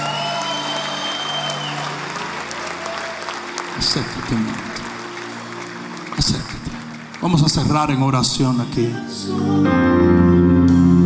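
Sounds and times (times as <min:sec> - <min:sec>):
audience applauding and cheering: 0:00.0 - 0:08.5
speech: 0:03.8 - 0:04.8, 0:06.2 - 0:11.0.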